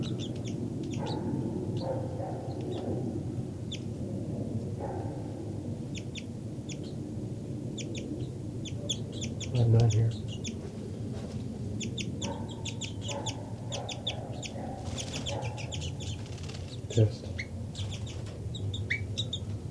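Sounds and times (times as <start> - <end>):
bird flight calls: 0.0 - 1.9, 7.8 - 10.7, 11.7 - 19.5
steady low rumbling background: 0.0 - 19.7.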